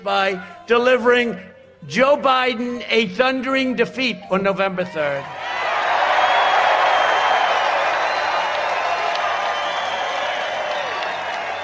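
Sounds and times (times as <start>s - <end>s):
speech: 0.0s - 5.4s
large rally crowd cheering: 5.2s - 11.6s.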